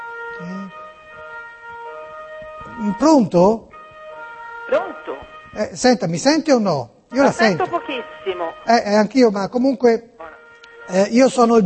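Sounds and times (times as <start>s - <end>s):
siren: 0.0s - 5.9s, 7.1s - 8.9s, 10.2s - 11.6s
speech: 0.4s - 0.8s, 2.7s - 3.7s, 4.7s - 10.1s, 10.9s - 11.6s.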